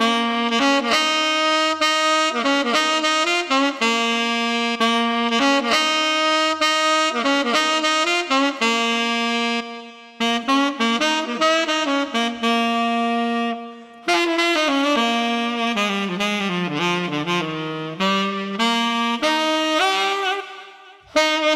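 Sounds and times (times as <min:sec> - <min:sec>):
tenor saxophone playing in the street: 0:00.0 - 0:21.5.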